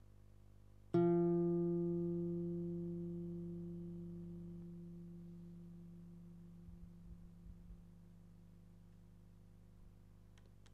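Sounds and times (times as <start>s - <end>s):
guitar: 1.0s - 9.5s.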